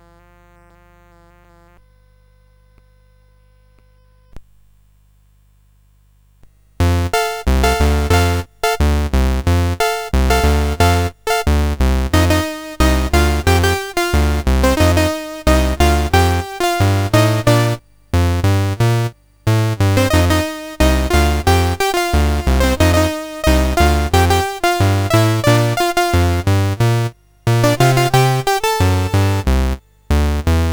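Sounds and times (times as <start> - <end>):
CSG 8580 sound chip: 6.8 - 30.7.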